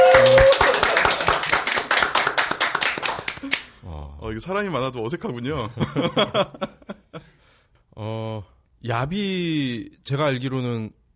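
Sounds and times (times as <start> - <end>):
small audience clapping: 0.0 - 3.8
speech: 4.4 - 6.8, 8.8 - 11.0
laughter: 5.6 - 7.2.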